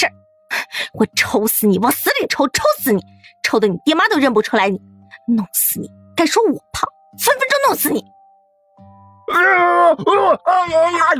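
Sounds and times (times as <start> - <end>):
speech: 0.0 - 0.2, 0.9 - 8.2, 8.8 - 11.1
man screaming in pain: 9.3 - 11.1.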